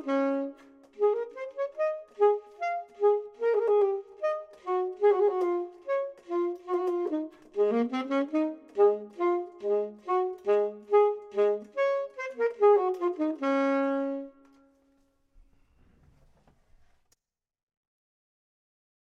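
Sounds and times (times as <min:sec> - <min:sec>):
saxophone: 0:00.0 - 0:15.0
clarinet: 0:00.0 - 0:15.1.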